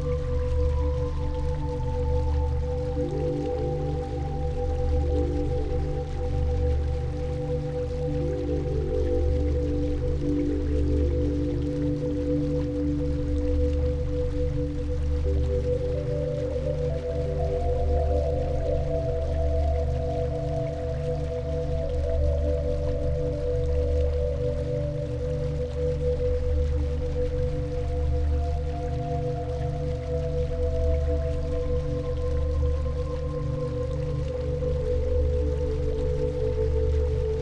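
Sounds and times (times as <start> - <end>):
flowing water stream: 0.0 - 37.4
light melodies: 0.0 - 37.4.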